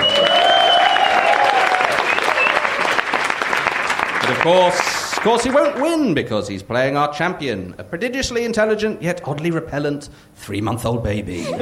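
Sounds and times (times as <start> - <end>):
audience cheers and whistles: 0.0 - 2.9
audience applause: 0.0 - 6.0
speech: 4.4 - 11.6.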